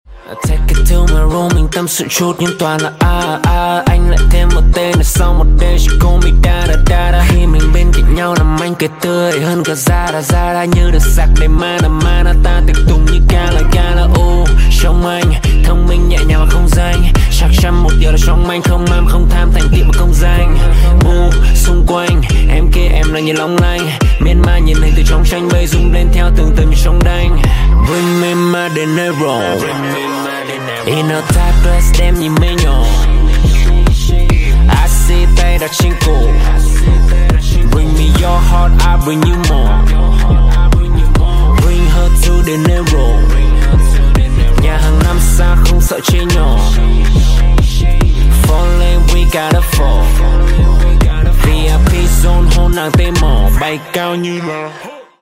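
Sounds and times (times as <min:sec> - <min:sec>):
rap ringtone: 0:00.1 - 0:55.2.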